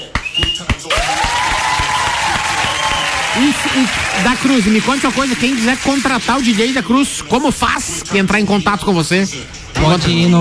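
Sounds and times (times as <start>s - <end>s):
audience applause: 0.9s - 6.8s
speech: 3.4s - 10.3s.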